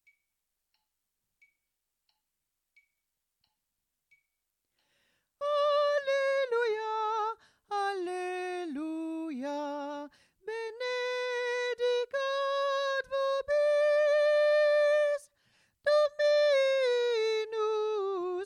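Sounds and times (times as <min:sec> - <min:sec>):
soprano singing: 0:05.4 - 0:18.4.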